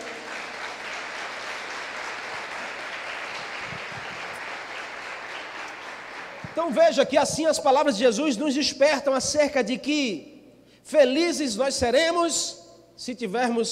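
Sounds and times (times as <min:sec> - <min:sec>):
audience applause: 0:00.0 - 0:06.8
speech: 0:06.6 - 0:13.7.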